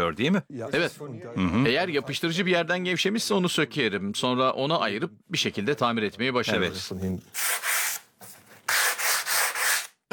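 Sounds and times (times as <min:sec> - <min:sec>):
speech: 0:00.1 - 0:07.7
sandpaper rubbing over a wooden surface: 0:07.3 - 0:08.0, 0:08.7 - 0:10.0.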